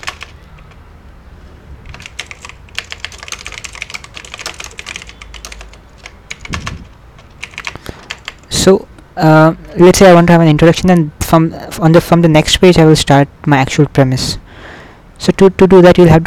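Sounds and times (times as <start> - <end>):
typing on a computer keyboard: 0.0 - 0.8, 1.8 - 8.6
speech: 8.6 - 14.4, 15.2 - 16.2.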